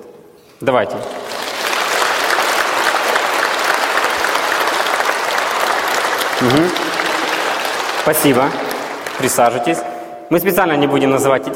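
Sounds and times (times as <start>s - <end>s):
speech: 0.0s - 1.3s, 6.4s - 6.8s, 8.1s - 11.5s
audience applause: 1.0s - 9.7s.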